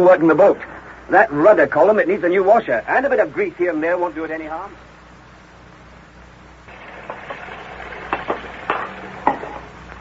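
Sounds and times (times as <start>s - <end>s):
speech: 0.0s - 4.9s
running water at a sink: 6.7s - 9.9s.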